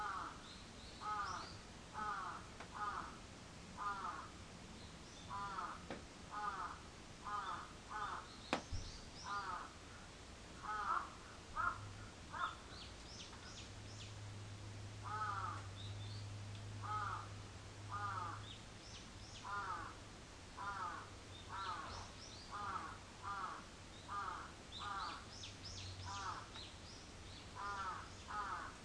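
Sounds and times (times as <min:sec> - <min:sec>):
crow cawing: 0:00.0 - 0:00.4, 0:01.0 - 0:03.2, 0:03.8 - 0:04.4, 0:05.3 - 0:08.3, 0:09.2 - 0:12.7, 0:15.0 - 0:15.7, 0:16.8 - 0:18.6, 0:19.4 - 0:20.0, 0:20.6 - 0:25.2, 0:26.0 - 0:26.6, 0:27.6 - 0:28.8
small birds chirping: 0:00.0 - 0:03.2, 0:03.8 - 0:14.3, 0:15.0 - 0:17.3, 0:17.9 - 0:20.0, 0:20.6 - 0:28.8.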